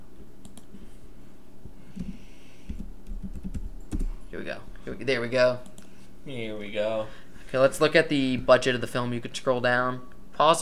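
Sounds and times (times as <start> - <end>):
typing on a computer keyboard: 2.7 - 4.2
speech: 4.4 - 10.6.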